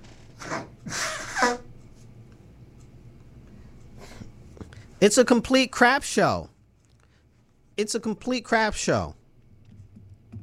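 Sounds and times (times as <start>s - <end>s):
person blowing nose: 0.4s - 1.7s
speech: 5.0s - 6.5s, 7.8s - 9.2s.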